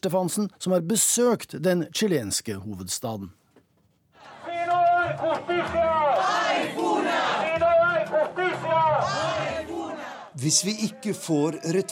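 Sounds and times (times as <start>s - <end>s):
speech: 0.0s - 3.4s, 5.1s - 6.9s, 10.4s - 11.9s
protest crowd shouting slogans: 4.2s - 11.2s.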